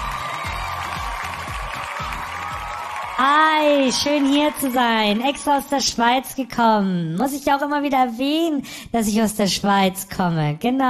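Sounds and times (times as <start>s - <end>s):
audience applause and cheering: 0.0s - 6.1s
speech: 3.2s - 10.8s.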